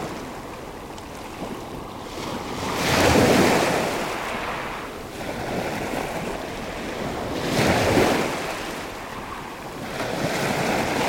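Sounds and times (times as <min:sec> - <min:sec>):
medium ocean surf breaking close onto a pebble beach: 0:02.0 - 0:11.0.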